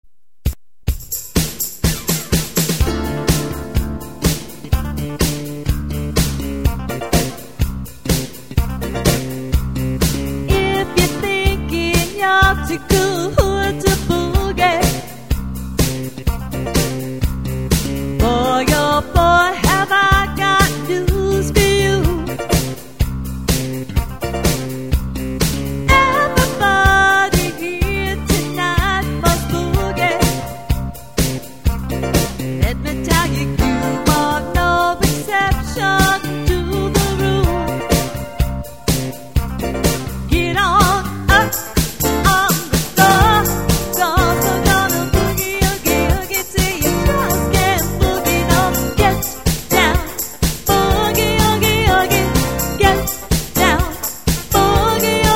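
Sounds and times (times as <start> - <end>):
disco music: 0.9 - 55.3.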